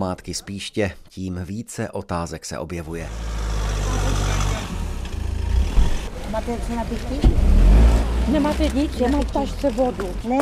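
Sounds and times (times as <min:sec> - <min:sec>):
speech: 0:00.0 - 0:04.5, 0:06.3 - 0:10.4
volunteer firefighters' car from Píšť arriving at a church: 0:03.0 - 0:10.4.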